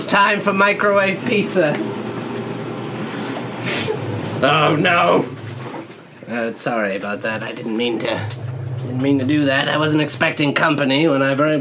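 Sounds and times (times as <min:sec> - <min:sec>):
dishwasher running: 0:00.0 - 0:11.6
speech: 0:00.1 - 0:02.0, 0:04.4 - 0:05.4, 0:06.3 - 0:11.6.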